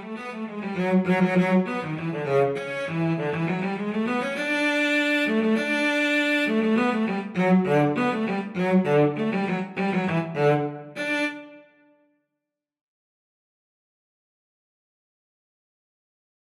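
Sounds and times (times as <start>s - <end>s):
cello duet: 0.0s - 11.8s.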